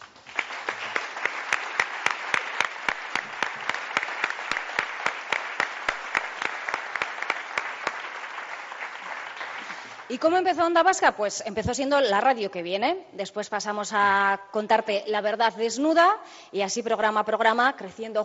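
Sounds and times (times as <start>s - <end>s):
audience applause: 0.0s - 10.2s
speech: 10.1s - 18.2s.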